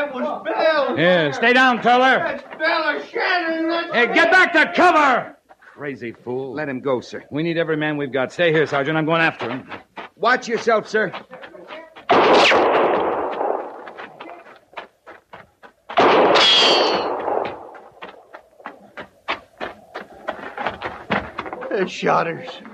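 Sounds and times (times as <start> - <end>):
speech: 0.5 - 11.4, 21.8 - 22.7
booming gunshot blasts: 12.1 - 14.0, 16.0 - 18.0.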